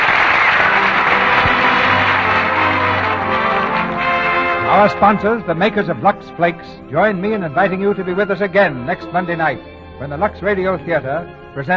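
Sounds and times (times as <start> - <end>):
studio audience applause: 0.0 - 5.0
speech: 4.8 - 11.7.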